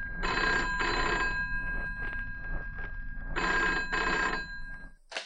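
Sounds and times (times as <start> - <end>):
old telephone bell ringing: 0.1 - 2.2, 3.3 - 5.0.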